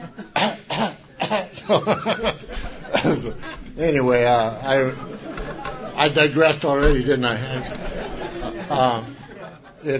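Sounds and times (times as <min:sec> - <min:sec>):
laughter: 0:00.0 - 0:00.4, 0:01.1 - 0:09.9
woman coughing in the audience: 0:00.4 - 0:01.5
speech: 0:01.7 - 0:02.4, 0:03.2 - 0:05.1, 0:06.0 - 0:07.8, 0:08.7 - 0:09.1.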